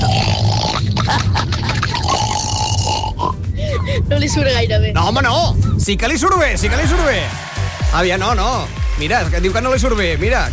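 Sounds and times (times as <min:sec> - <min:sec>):
person imitating a pig: 0:00.0 - 0:03.4
speech: 0:04.2 - 0:10.5.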